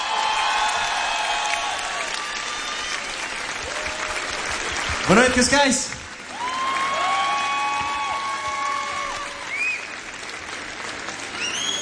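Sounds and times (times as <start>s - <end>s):
cheers and whistles: 0.0s - 4.4s, 6.3s - 10.0s, 11.3s - 11.7s
crowd applauding: 0.0s - 11.7s
speech: 5.1s - 6.0s.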